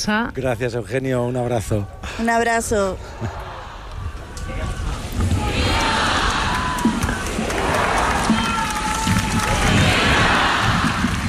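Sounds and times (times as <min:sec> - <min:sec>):
speech: 0:00.0 - 0:03.4
large crowd cheering vivas for the Pope: 0:03.0 - 0:11.2.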